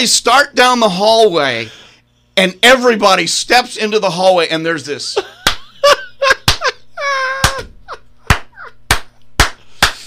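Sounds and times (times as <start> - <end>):
speech: 0.0 - 1.8, 2.4 - 5.4
laughter: 5.2 - 8.8
hands clapping to mimic applause: 5.4 - 5.7, 6.4 - 6.8, 7.4 - 7.7, 8.3 - 10.0.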